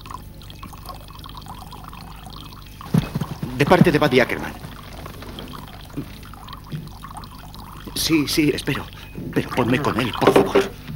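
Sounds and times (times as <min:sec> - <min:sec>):
water pouring into a glass: 0:00.0 - 0:10.7
speech: 0:03.6 - 0:04.7, 0:06.0 - 0:06.2, 0:08.0 - 0:10.8.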